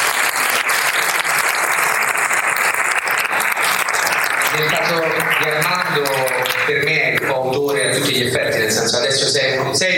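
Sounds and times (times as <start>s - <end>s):
audience applause: 0.0s - 7.6s
speech: 4.6s - 9.9s.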